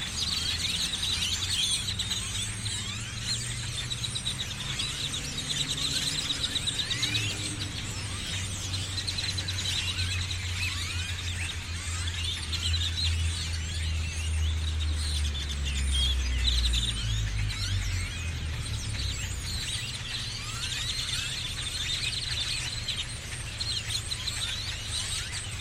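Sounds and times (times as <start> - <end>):
dense bird chorus: 0.0 - 25.5
vehicles passing: 0.0 - 25.5.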